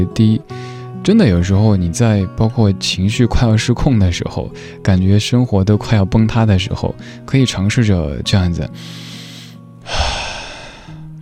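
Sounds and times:
speech: 0.0 - 9.2
deep breath taken to calm down: 0.5 - 0.9, 8.8 - 11.2.

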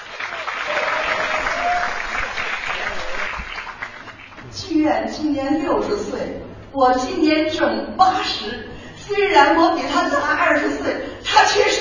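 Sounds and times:
audience applause in a theater: 0.0 - 4.4
speech: 4.9 - 11.7.

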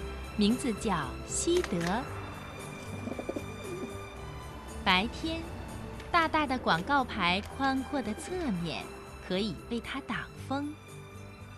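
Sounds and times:
speech: 0.4 - 2.2, 4.8 - 10.8
pigeon cooing: 2.9 - 4.0.

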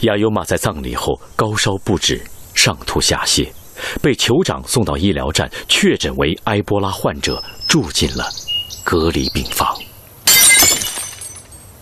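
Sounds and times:
speech: 0.0 - 9.9
bowl smashing and breaking: 10.3 - 11.7.

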